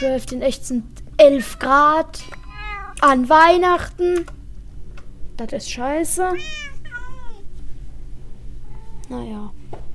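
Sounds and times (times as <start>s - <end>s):
speech: 0.0s - 2.4s, 3.0s - 4.4s, 5.4s - 6.7s, 9.1s - 9.6s
low hum: 0.0s - 9.9s
cat meowing: 1.2s - 3.0s, 6.4s - 7.5s.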